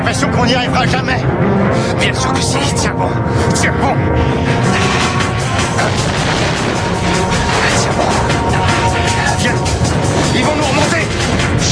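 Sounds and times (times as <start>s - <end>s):
speech: 0.1s - 4.8s, 5.8s - 8.6s, 9.4s - 11.6s
boat exploding: 5.5s - 11.6s.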